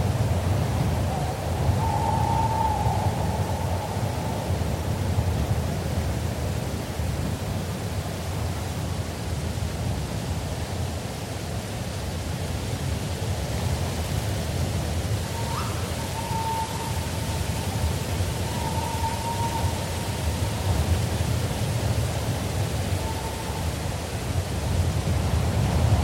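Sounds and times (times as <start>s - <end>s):
steady breeze through forest trees: 0.0s - 26.0s
thin whistled bird calls: 1.1s - 4.5s, 15.2s - 21.0s, 22.8s - 23.8s.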